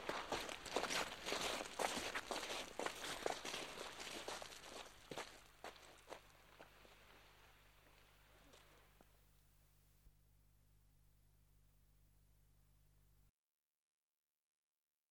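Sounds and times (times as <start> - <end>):
footsteps through bushes: 0.0 - 7.5.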